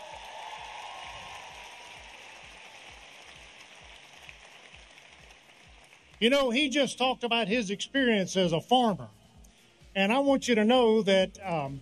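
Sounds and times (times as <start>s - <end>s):
audience applause at a rally: 0.0s - 6.2s
speech: 6.2s - 9.2s, 10.0s - 11.8s.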